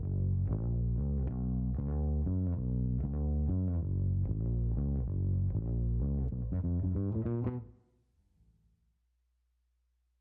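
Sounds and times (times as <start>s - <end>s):
clean bass: 0.0s - 7.8s.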